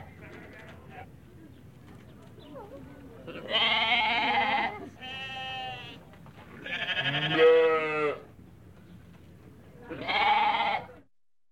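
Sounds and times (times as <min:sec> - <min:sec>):
goat kid bleating: 0:03.3 - 0:06.0, 0:06.6 - 0:08.3, 0:09.9 - 0:11.0.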